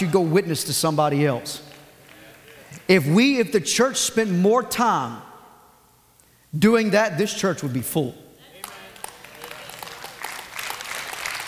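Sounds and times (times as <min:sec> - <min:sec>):
speech: 0:00.0 - 0:01.7, 0:02.8 - 0:05.3, 0:06.5 - 0:08.2
scattered clapping from a small audience in a reverberant room: 0:08.5 - 0:11.4.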